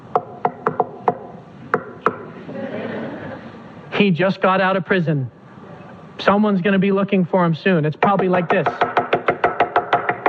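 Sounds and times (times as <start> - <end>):
knocking on a wooden door: 0.2 - 1.2, 8.0 - 10.2
laughter: 2.2 - 3.8
speech: 4.0 - 5.4, 6.2 - 8.9.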